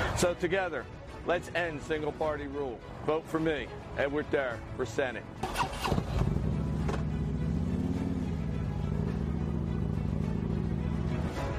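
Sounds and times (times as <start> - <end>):
speech: 0.2 - 5.6
motorcycle riding away: 5.4 - 11.5.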